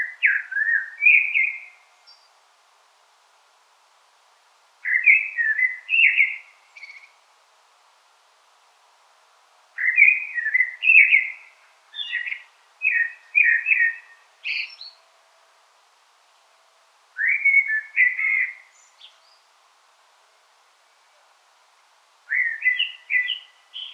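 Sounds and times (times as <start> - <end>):
common blackbird song: 0.0 - 2.4, 4.8 - 7.2, 9.8 - 15.2, 17.2 - 19.5, 22.3 - 23.9.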